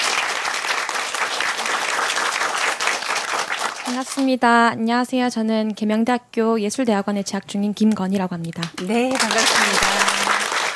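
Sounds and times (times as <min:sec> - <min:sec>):
audience applause: 0:00.0 - 0:04.0, 0:08.8 - 0:10.7
speech: 0:03.9 - 0:09.9.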